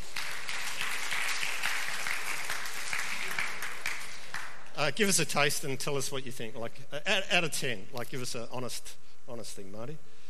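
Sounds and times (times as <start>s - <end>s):
church congregation applause for a volunteer: 0.0s - 5.2s
speech: 4.9s - 10.2s.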